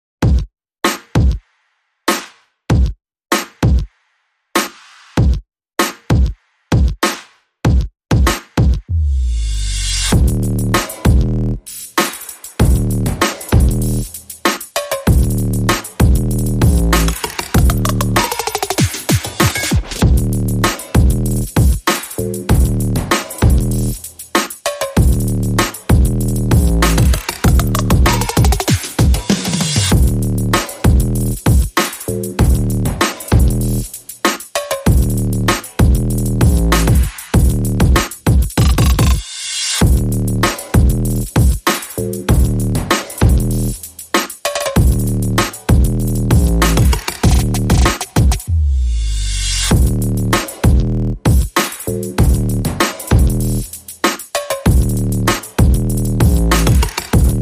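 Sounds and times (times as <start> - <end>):
drums: 0.2 - 57.4
bass: 8.9 - 11.7, 12.6 - 14.2, 15.1 - 18.4, 20.0 - 21.6, 22.2 - 24.2, 25.0 - 28.6, 29.4 - 34.0, 34.9 - 39.2, 39.8 - 43.9, 44.8 - 51.3, 51.9 - 53.8, 54.7 - 57.4.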